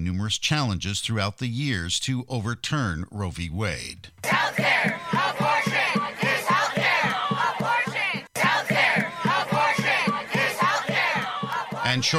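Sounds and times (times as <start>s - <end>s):
speech: 0.0s - 5.8s, 11.9s - 12.1s
protesters yelling outside the Supreme Court: 4.2s - 12.1s.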